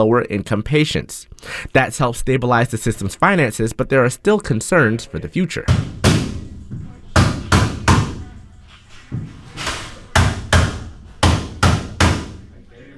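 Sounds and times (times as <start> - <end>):
speech: 0.0 - 6.0
construction crews hammering on wall frames on the upper floors: 5.7 - 8.4, 9.2 - 12.5.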